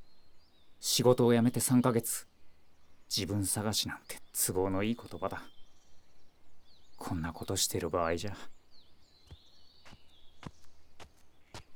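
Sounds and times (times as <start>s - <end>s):
speech: 1.0s - 2.3s, 3.1s - 5.6s, 7.0s - 8.6s
footsteps of a woman walking: 9.2s - 11.7s.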